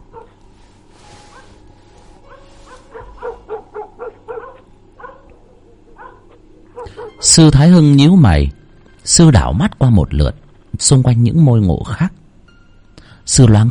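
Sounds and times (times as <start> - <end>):
rustling noise: 0.0 - 5.2
low hum: 0.0 - 13.6
dog barking: 0.1 - 0.4, 1.3 - 1.6, 2.2 - 7.3
speech: 7.3 - 12.2, 13.3 - 13.6.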